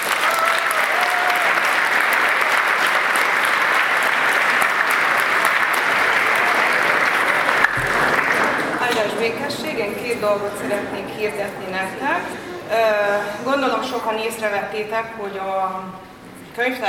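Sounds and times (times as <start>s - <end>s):
room full of people applauding: 0.0s - 10.9s
speech: 10.2s - 16.8s.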